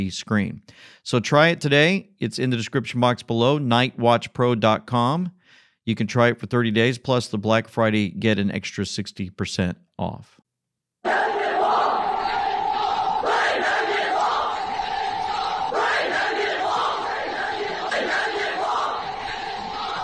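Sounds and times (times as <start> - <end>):
speech: 0.0 - 10.4
crowd screaming: 11.0 - 20.0.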